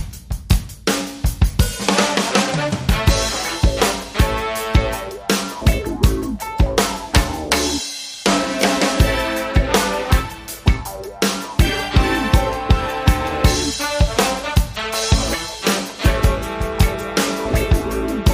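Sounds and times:
seventies funk music: 0.1s - 18.3s.

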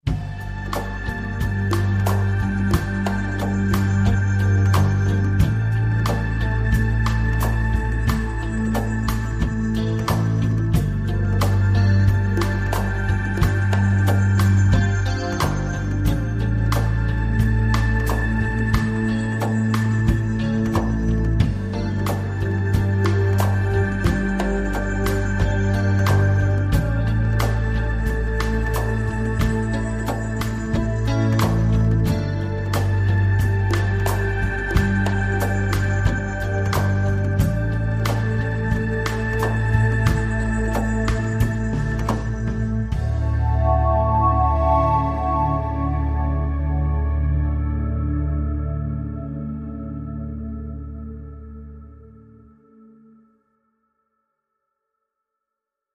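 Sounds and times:
latin romance music: 0.0s - 52.4s.

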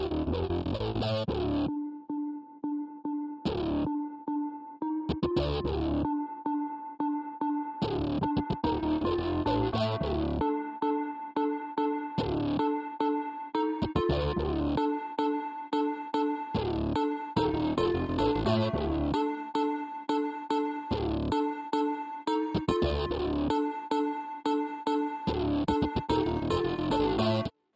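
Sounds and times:
house synth music: 0.1s - 27.5s.

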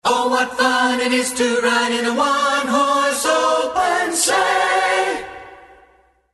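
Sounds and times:
Christmas song: 0.0s - 6.3s.

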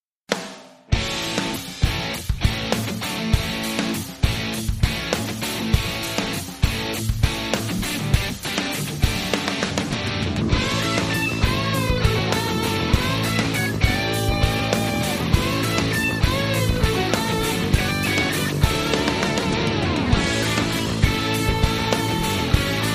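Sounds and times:
southern rock music: 0.9s - 22.9s.

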